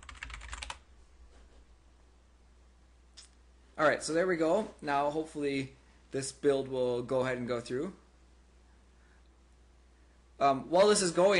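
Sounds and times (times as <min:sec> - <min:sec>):
typing on a computer keyboard: 0:00.0 - 0:00.8
speech: 0:03.8 - 0:08.0, 0:10.4 - 0:11.3.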